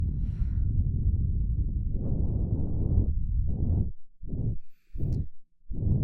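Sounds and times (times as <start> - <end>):
breath blown into both ears: 0.1 - 0.8, 2.0 - 6.0.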